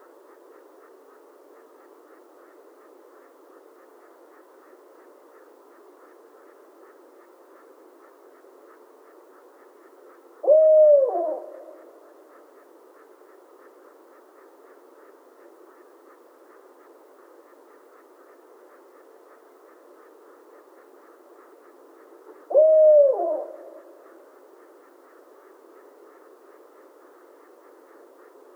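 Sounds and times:
barred owl hooting: 7.6 - 28.5.

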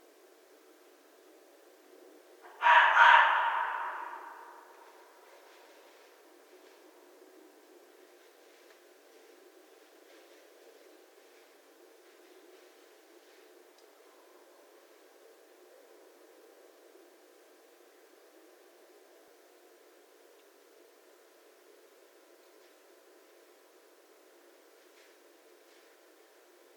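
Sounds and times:
North American red fox: 2.4 - 5.4.

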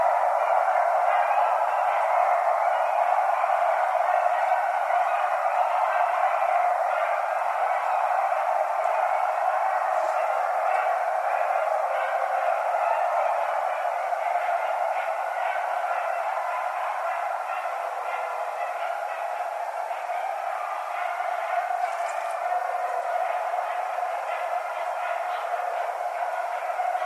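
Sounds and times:
coyote howling and yipping: 0.0 - 27.0.

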